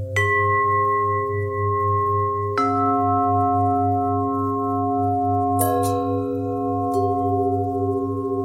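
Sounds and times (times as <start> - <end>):
long bell ring: 0.2 - 8.4.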